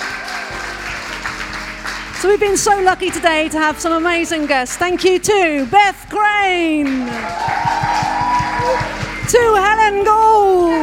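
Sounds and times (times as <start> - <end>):
audience applause: 0.0 - 3.1, 3.8 - 9.3
speech: 2.2 - 7.6, 8.6 - 10.8.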